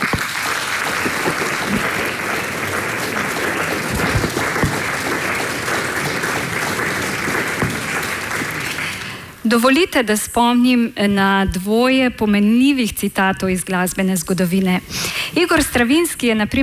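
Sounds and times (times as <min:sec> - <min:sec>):
audience applause: 0:00.0 - 0:09.4
speech: 0:09.5 - 0:16.6.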